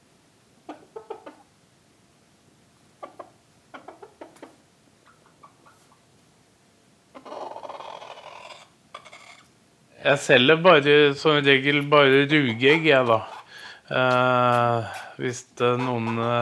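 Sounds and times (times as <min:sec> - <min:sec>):
chickens clucking: 0:00.6 - 0:01.5, 0:02.9 - 0:06.2, 0:07.1 - 0:09.5, 0:10.8 - 0:16.3
speech: 0:10.0 - 0:13.3, 0:13.9 - 0:16.3.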